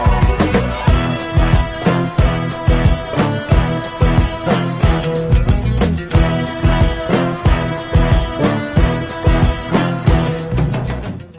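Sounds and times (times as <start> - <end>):
disco music: 0.0 - 11.0.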